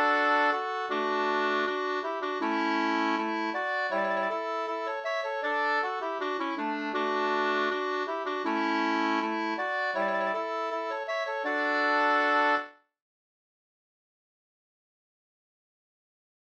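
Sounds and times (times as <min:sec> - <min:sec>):
folk walking tune: 0:00.0 - 0:12.7.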